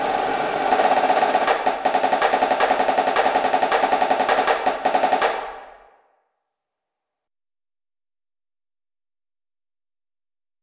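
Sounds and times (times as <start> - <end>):
snare drum: 0.0 - 5.9.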